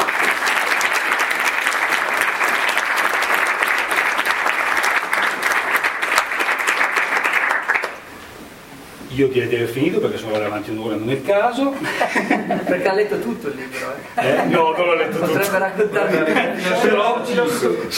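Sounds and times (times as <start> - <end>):
audience applause: 0.0 - 8.1
speech: 9.2 - 17.9
laughter: 11.7 - 13.0, 13.8 - 17.9.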